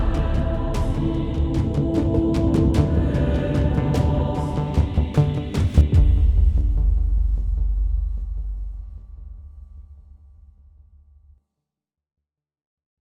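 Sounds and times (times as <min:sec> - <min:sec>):
intro music: 0:00.0 - 0:08.4.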